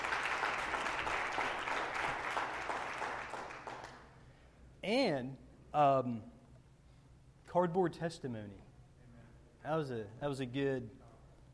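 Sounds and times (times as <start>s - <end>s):
audience applause: 0.0s - 4.0s
speech: 4.9s - 6.3s, 7.5s - 8.7s, 9.6s - 11.0s.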